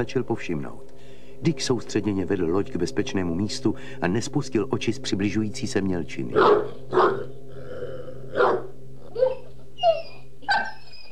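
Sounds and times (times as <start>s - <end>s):
speech: 0.0s - 7.2s
dog howling mournfully: 6.3s - 11.1s.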